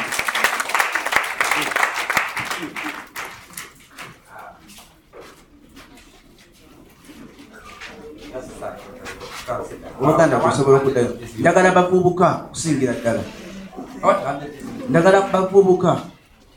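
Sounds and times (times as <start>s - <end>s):
audience clapping: 0.0s - 4.2s
speech: 10.0s - 13.4s, 14.0s - 16.1s.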